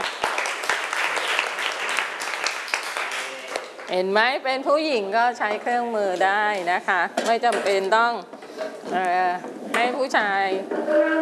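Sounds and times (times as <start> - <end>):
applause: 0.0 - 3.9
speech: 3.9 - 11.2.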